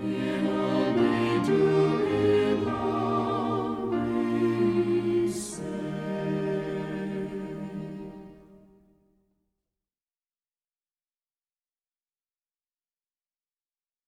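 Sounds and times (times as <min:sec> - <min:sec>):
hymn singing: 0:00.0 - 0:08.6.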